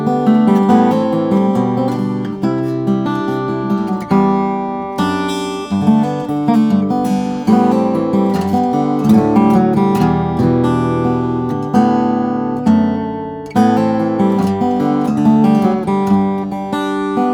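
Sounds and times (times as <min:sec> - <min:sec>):
parlor flattop steel-string guitar of Brazilian rosewood and Sitka spruce: 0:00.0 - 0:17.3.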